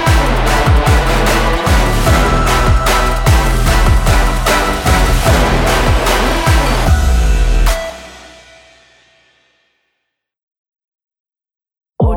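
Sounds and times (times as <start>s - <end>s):
epic hip hop beat: 0.0s - 9.3s.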